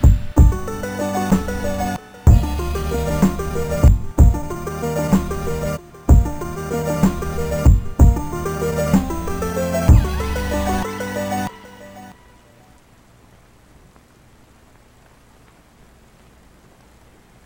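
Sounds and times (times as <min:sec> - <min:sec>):
lo-fi remix: 0:00.0 - 0:12.4.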